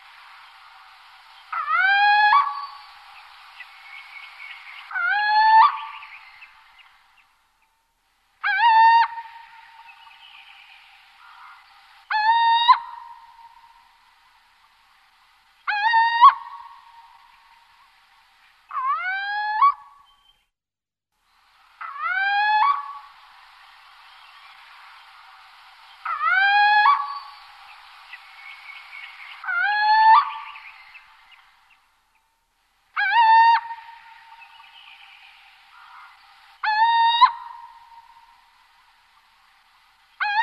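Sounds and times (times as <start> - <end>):
little owl territorial call: 1.4 - 7.0, 8.4 - 13.9, 15.6 - 17.6, 18.7 - 20.3, 21.8 - 23.1, 26.0 - 31.6, 32.9 - 38.7, 40.2 - 40.4.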